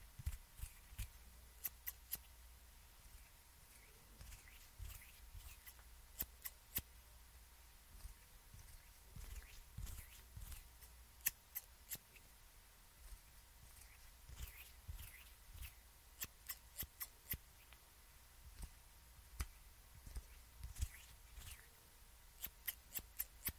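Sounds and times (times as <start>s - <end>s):
scissors clicks and snips: 0.2s - 2.3s, 3.7s - 6.9s, 8.0s - 12.2s, 13.7s - 17.4s, 22.4s - 23.5s
soft rustles of hand movements: 3.0s - 5.9s, 7.8s - 11.0s, 12.0s - 15.9s, 17.5s - 21.8s.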